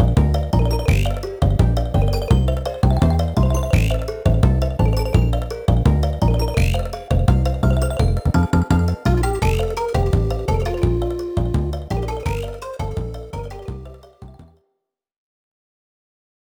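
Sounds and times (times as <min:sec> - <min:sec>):
conga drum: 0:00.0 - 0:12.6.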